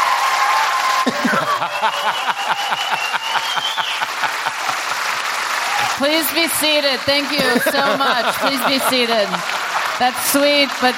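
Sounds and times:
faint whoops and cheers: 0.0s - 4.3s, 5.5s - 6.0s
crowd clapping: 0.0s - 10.9s
laughter: 1.0s - 5.0s, 7.1s - 10.7s
speech: 1.6s - 4.6s, 6.0s - 10.9s.

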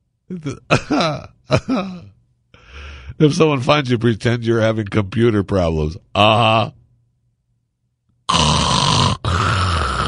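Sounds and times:
speech: 0.3s - 2.2s, 3.2s - 6.8s
loud rasping snoring sound: 8.3s - 10.0s.

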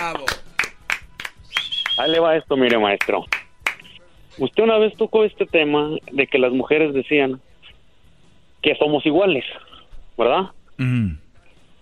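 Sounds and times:
applause: 0.0s - 2.0s, 2.7s - 3.9s
speech: 2.0s - 3.4s, 4.4s - 7.5s, 8.6s - 11.2s.

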